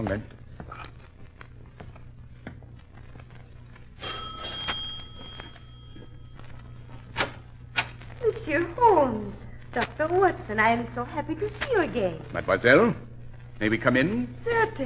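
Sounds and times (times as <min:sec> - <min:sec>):
speech: 0:00.0 - 0:00.4, 0:08.4 - 0:13.0, 0:13.6 - 0:14.8
doorbell ringing at front door: 0:04.0 - 0:06.3.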